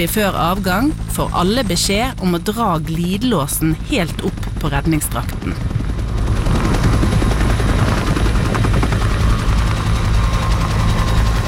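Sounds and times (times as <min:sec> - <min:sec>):
speech: 0:00.0 - 0:05.8
powerful rotor of an 11-ton helicopter lifting off: 0:00.0 - 0:11.4.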